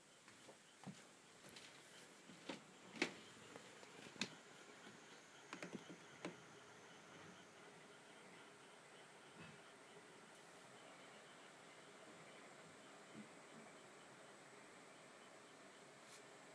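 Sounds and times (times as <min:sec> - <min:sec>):
low hiss: 0:00.0 - 0:16.5.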